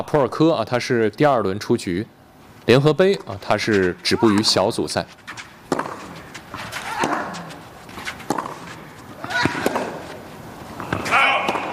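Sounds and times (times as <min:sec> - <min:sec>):
speech: 0:00.0 - 0:05.4
tennis ball strikes in a professional match rally: 0:05.7 - 0:10.2, 0:10.8 - 0:11.7.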